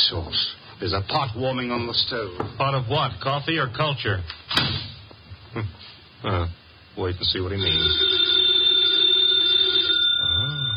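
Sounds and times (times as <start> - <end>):
speech: 0.1 - 4.8, 5.5 - 8.2
telephone ringing: 7.6 - 10.7.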